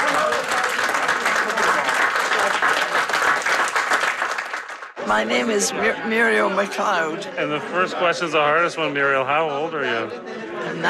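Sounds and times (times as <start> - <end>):
murmur of voices: 0.0 - 3.2, 5.0 - 10.8
audience applause: 0.0 - 5.5
speech: 5.1 - 10.8.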